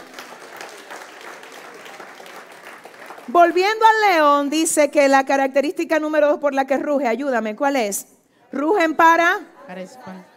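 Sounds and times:
audience applause: 0.0s - 3.8s
speech: 3.3s - 10.3s.

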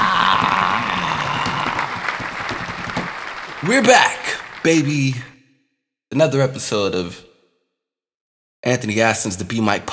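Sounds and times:
round of applause: 0.0s - 5.2s
speech: 3.6s - 5.3s, 6.1s - 7.3s, 8.6s - 9.9s.

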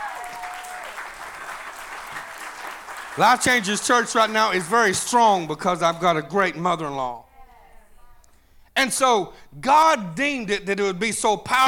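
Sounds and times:
audience applause: 0.0s - 5.0s
speech: 3.2s - 7.2s, 8.8s - 11.6s.

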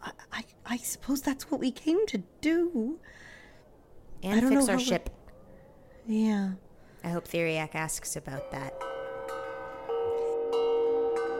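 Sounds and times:
speech: 0.7s - 3.4s, 4.2s - 5.2s, 6.1s - 8.9s
bell ringing outside a restaurant: 8.4s - 11.3s.

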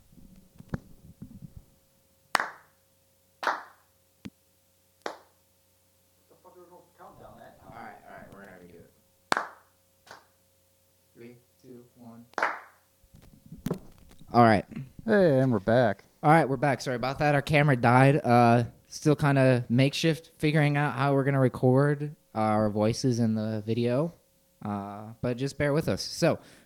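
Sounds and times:
hand clap for audio sync: 2.3s - 2.8s, 3.4s - 3.9s, 5.0s - 5.4s, 9.3s - 10.3s, 12.3s - 12.8s
speech: 14.3s - 26.6s.

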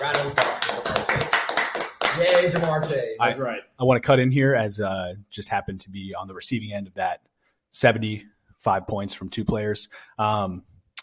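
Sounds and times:
applause: 0.0s - 3.2s
speech: 2.4s - 10.7s.

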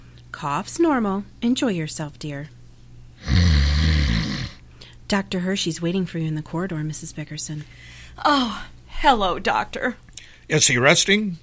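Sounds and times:
speech: 0.4s - 2.6s, 5.1s - 11.4s
loud snoring: 3.2s - 4.6s.

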